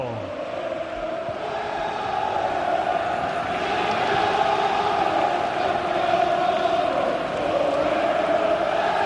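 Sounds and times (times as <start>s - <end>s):
football players shouting and chanting in celebration on pitch: 0.0s - 9.0s.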